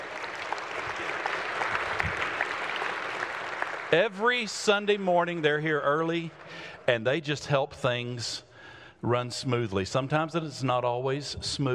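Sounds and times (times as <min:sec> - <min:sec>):
audience applause: 0:00.0 - 0:06.7
speech: 0:03.9 - 0:11.7.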